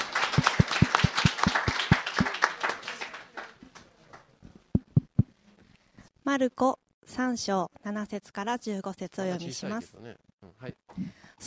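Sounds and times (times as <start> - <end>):
audience applause of encouragement: 0.0 - 4.2
speech: 6.3 - 11.4.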